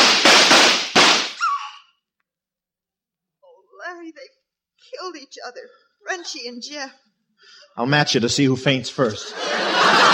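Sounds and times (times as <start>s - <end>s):
gunshots in a radio drama shootout: 0.0s - 1.4s
speech: 4.0s - 10.1s
laughter: 9.0s - 10.1s.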